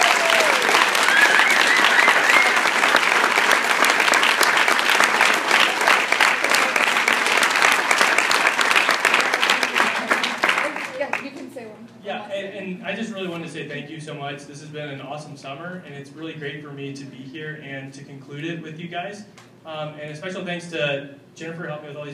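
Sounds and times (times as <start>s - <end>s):
faint voices and cheers: 0.0s - 2.8s
large audience applause: 0.0s - 11.3s
speech: 13.2s - 22.1s.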